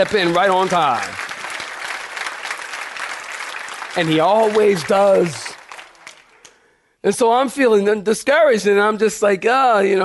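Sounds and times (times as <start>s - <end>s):
speech: 0.0s - 1.2s, 4.0s - 5.5s, 7.0s - 10.0s
audience clapping: 0.0s - 6.7s.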